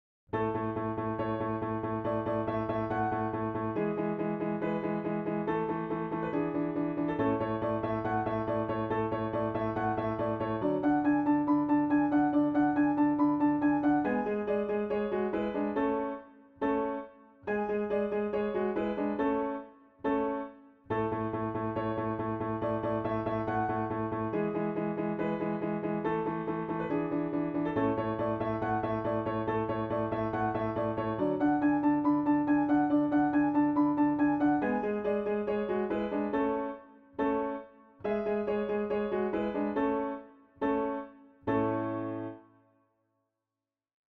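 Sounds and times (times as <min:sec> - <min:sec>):
piano: 0:00.3 - 0:42.8.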